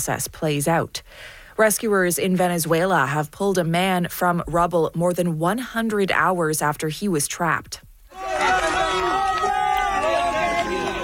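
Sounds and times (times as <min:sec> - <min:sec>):
speech: 0:00.0 - 0:08.3
onlookers cheering at rescue scene: 0:08.1 - 0:11.0.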